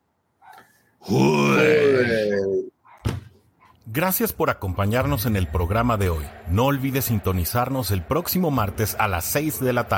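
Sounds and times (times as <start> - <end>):
speech: 1.0 - 1.4, 4.0 - 9.9
voice imitating a roar: 1.0 - 2.7
brief thump: 3.0 - 3.4.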